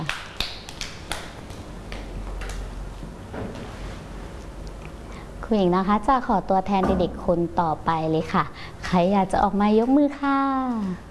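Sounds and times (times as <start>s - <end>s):
children clapping: 0.0s - 2.1s
speech: 5.5s - 11.1s.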